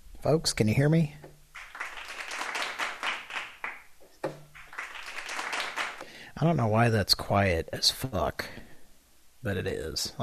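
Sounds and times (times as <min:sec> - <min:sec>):
speech: 0:00.2 - 0:01.2, 0:06.4 - 0:08.7, 0:09.4 - 0:10.2
canned applause sound effect: 0:01.6 - 0:06.1.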